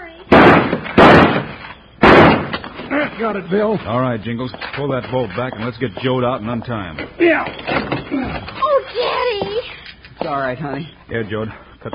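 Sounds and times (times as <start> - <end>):
gunshot blasting a door lock off: 0.3 - 2.8
speech: 3.2 - 8.6, 10.2 - 11.9.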